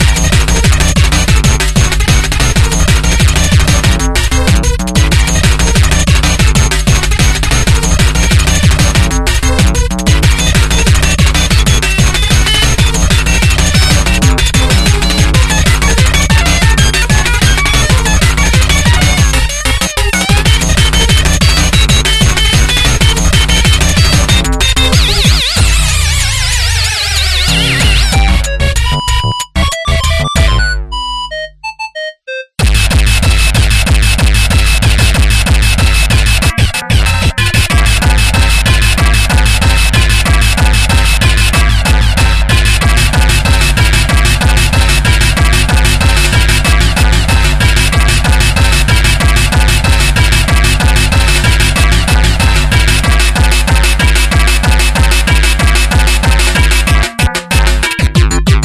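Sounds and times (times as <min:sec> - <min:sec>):
techno music: 0:00.0 - 0:58.6.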